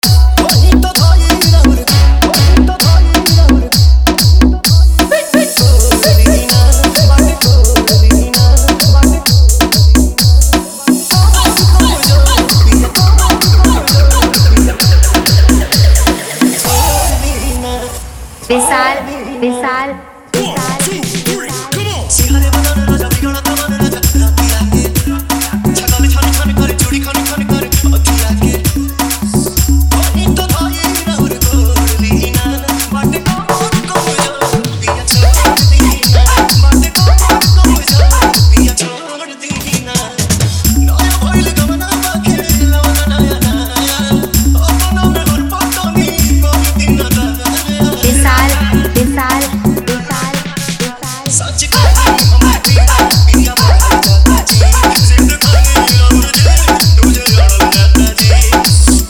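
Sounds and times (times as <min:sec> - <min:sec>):
Bhojpuri DJ remix song: 0:00.0 - 0:59.0.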